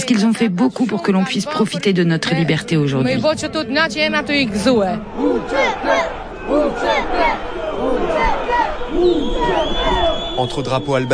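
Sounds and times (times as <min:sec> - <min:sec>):
speech: 0:00.1 - 0:11.1
crowd shouting in protest: 0:03.5 - 0:11.1.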